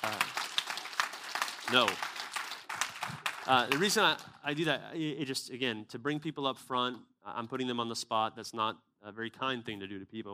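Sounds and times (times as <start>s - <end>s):
speech: 0.0s - 0.3s, 1.7s - 2.1s, 3.5s - 10.3s
audience round of applause: 0.0s - 4.3s.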